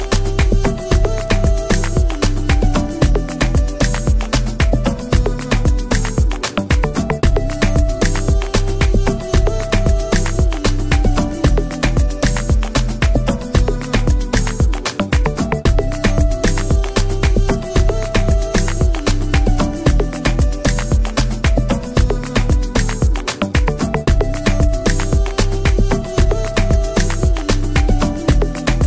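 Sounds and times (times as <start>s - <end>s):
afrobeat instrumental worship soundscape: 0.0s - 28.8s.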